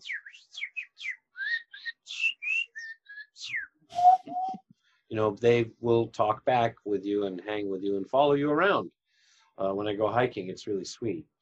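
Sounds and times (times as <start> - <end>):
whistled imitation of birdsong: 0.0 - 4.6
speech: 5.2 - 9.0, 9.6 - 11.3.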